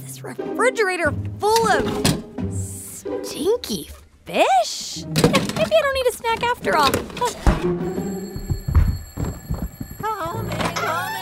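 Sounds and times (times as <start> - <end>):
speech: 0.2 - 2.3, 3.0 - 8.1
alarm clock ringing: 5.8 - 11.2.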